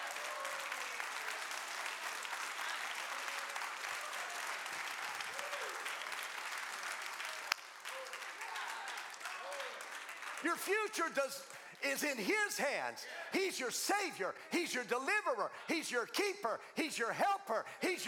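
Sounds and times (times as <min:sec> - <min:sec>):
audience applause: 0:00.0 - 0:14.0
speech: 0:10.4 - 0:18.0.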